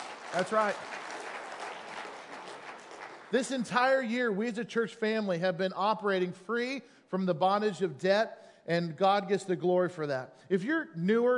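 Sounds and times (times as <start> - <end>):
audience clapping: 0.0 - 4.1
speech: 0.3 - 1.0, 3.3 - 11.3.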